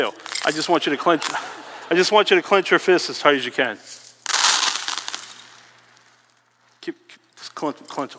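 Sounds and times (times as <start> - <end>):
coins clinking and spilling: 0.0 - 1.9, 3.7 - 6.3
speech: 0.0 - 4.0, 7.6 - 8.1.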